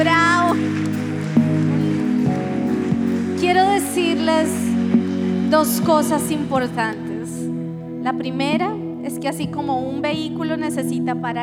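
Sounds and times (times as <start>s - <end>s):
audience giving loud applause: 0.0s - 8.0s
speech: 5.5s - 7.1s, 8.0s - 11.4s.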